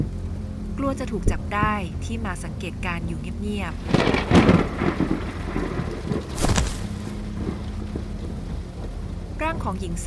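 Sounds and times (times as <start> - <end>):
speech: 0.8 - 5.7, 9.4 - 10.0
heavy rain: 3.2 - 10.0
deep rolls of thunder rumbling: 3.7 - 9.5.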